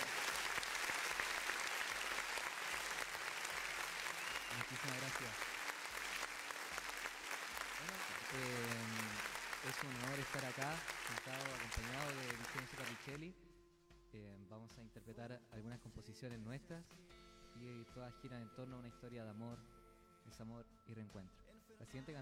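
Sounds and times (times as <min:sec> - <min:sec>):
audience applause: 0:00.0 - 0:13.2
speech: 0:04.6 - 0:05.5, 0:07.8 - 0:13.4, 0:14.1 - 0:22.1.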